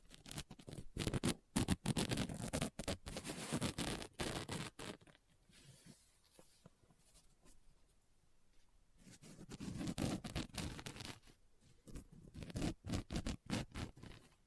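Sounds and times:
scratching on a book: 0.0 - 7.6, 9.0 - 14.4.

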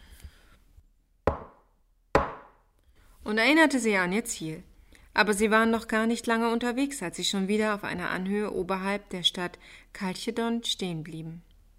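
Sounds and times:
shepherd's wooden staff striking the ground: 1.3 - 2.6
speech: 3.3 - 11.5.

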